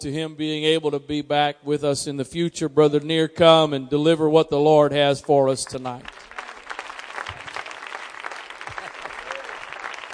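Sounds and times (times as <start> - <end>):
speech: 0.0 - 6.2
audience applause: 6.0 - 10.1.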